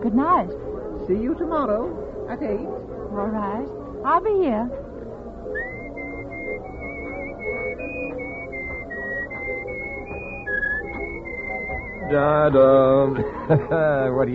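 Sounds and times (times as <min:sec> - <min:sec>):
soft murmur: 0:00.0 - 0:14.3
speech: 0:00.1 - 0:04.9, 0:12.1 - 0:14.3
person whistling a tune: 0:05.6 - 0:12.8
laughter: 0:11.8 - 0:14.3.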